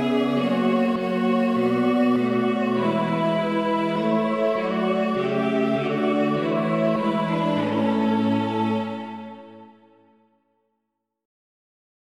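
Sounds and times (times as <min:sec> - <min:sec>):
hymn music: 0:00.0 - 0:10.2.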